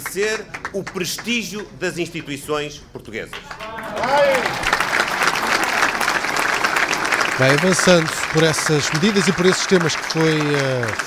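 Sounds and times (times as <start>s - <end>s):
speech: 0.1s - 4.8s, 7.4s - 11.0s
applause in a full hall: 3.3s - 11.0s.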